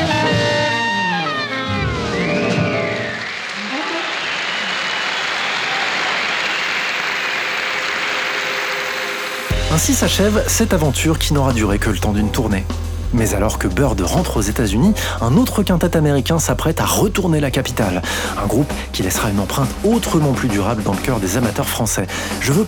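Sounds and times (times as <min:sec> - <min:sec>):
audience applause after jazz tune: 0:00.1 - 0:09.4
speech: 0:09.9 - 0:22.6.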